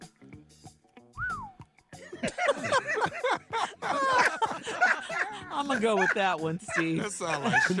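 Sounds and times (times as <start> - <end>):
whistle sound effect: 1.2 - 1.6
laughter: 2.0 - 7.7
speech: 5.6 - 7.7.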